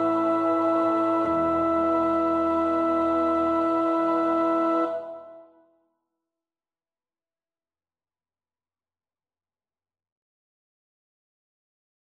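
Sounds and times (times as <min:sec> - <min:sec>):
soprano singing: 0:00.0 - 0:05.4.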